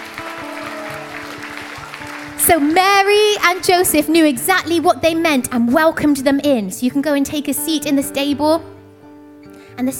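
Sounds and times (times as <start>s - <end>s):
audience applause: 0.0s - 4.1s
speech: 2.4s - 8.7s, 9.8s - 9.9s.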